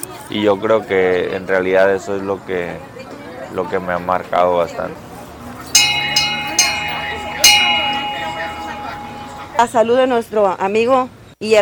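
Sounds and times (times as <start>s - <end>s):
speech: 0.3s - 5.1s, 9.6s - 11.5s
low murmur: 2.8s - 9.8s
bell being struck: 5.7s - 9.8s.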